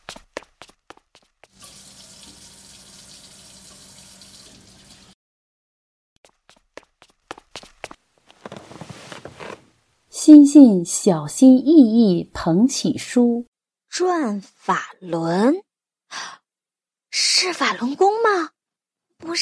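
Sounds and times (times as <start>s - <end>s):
water running from a tap while washing hands: 1.5s - 5.2s
speech: 10.3s - 16.4s, 17.2s - 18.6s, 19.2s - 19.4s.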